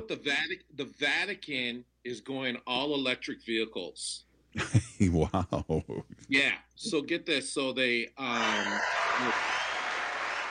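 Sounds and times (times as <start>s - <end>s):
speech: 0.0s - 9.5s
cheering crowd sound effect: 8.2s - 10.5s.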